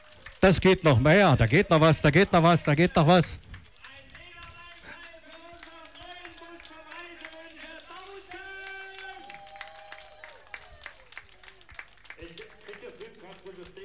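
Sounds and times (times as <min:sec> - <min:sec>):
crowd applauding at a bus christening: 0:00.0 - 0:13.8
speech: 0:00.4 - 0:03.4.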